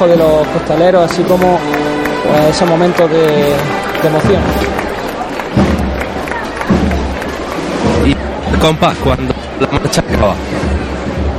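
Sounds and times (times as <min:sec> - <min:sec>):
speech: 0:00.0 - 0:04.8, 0:08.5 - 0:10.6
crowd clapping for procession float bearers: 0:00.0 - 0:08.9.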